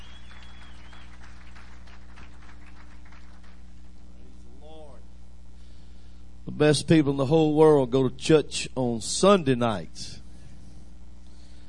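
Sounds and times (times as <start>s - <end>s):
audience applause: 0.0s - 4.0s
speech: 6.5s - 10.2s.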